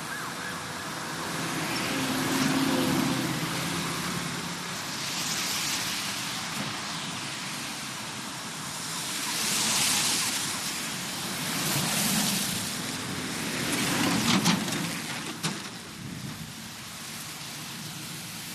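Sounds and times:
siren: 0.0 - 3.0
rain: 0.0 - 18.5
traffic on wet road: 0.0 - 18.5.

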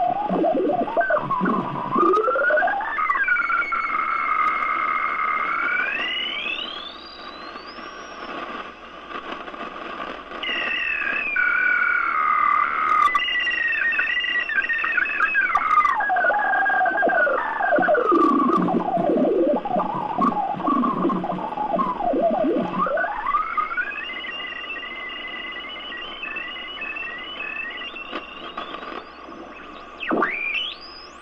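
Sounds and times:
electronic machine static: 0.0 - 31.1.

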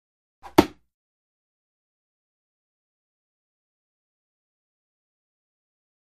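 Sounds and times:
feathered dart throw whoosh: 0.4 - 0.8.

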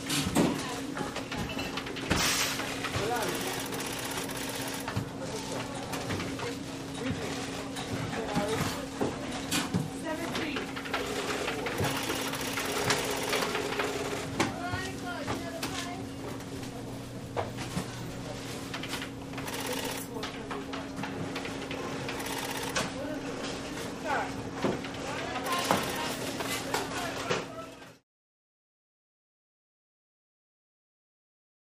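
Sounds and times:
grocery store ambience: 0.0 - 28.0
grocery store cash register: 1.5 - 6.1, 10.8 - 14.5, 18.8 - 20.3, 21.0 - 24.2, 25.3 - 27.3.

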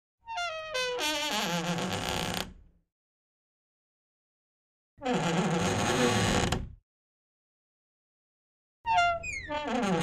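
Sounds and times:
wooden door creaking: 0.3 - 2.6, 5.0 - 6.8, 8.9 - 10.0.

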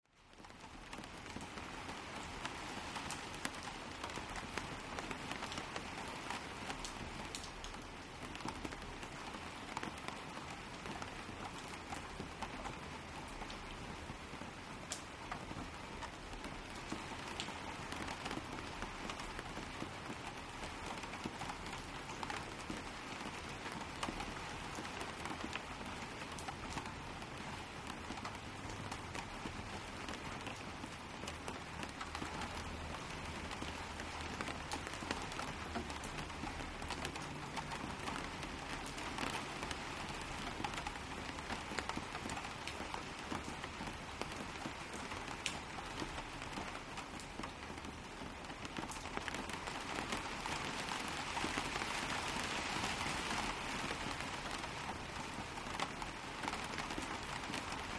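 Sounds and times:
medium rain outdoors: 0.0 - 57.9.

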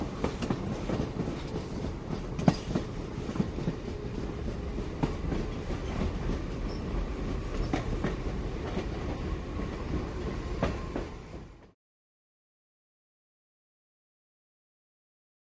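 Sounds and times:
train passing through tunnel heard as passenger: 0.0 - 11.8.

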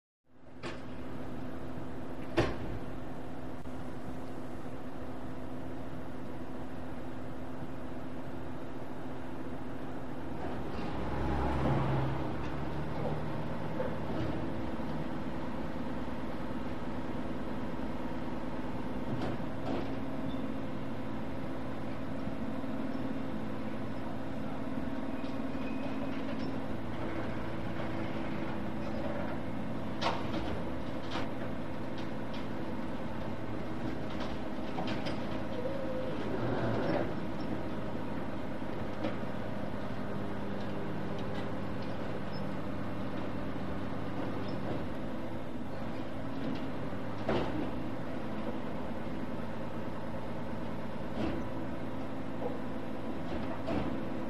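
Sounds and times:
medium garbage truck: 0.4 - 54.2.

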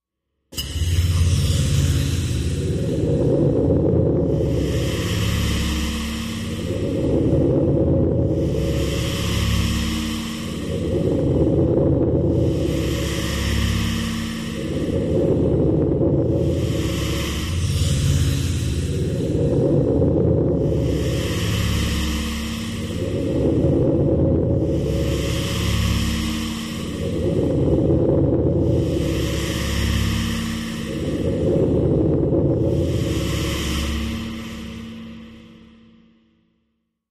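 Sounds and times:
slow breathy shimmering ambient big lungs: 0.6 - 36.8.

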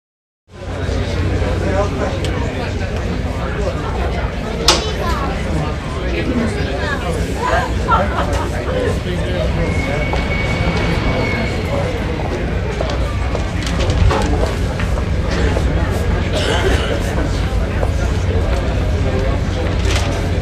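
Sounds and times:
hospital ambience: 0.6 - 20.4
laughter: 6.1 - 11.4, 15.2 - 19.4.

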